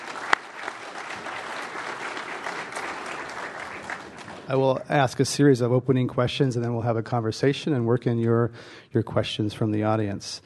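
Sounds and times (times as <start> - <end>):
audience applause welcoming an expert panel: 0.0 - 4.9
speech: 4.5 - 10.4.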